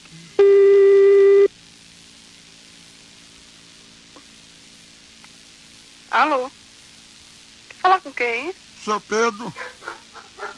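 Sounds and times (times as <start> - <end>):
telephone ringback tone during a Brazilian prank call: 0.4 - 1.5
speech: 6.2 - 6.6, 7.8 - 9.8.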